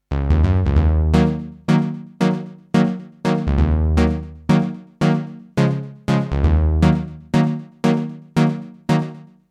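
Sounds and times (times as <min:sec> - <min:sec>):
Roland JX 08 synthesizer: 0:00.1 - 0:09.4.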